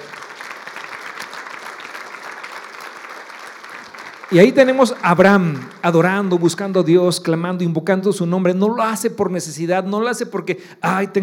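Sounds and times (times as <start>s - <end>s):
audience applause: 0.0s - 7.0s
speech: 4.3s - 11.2s.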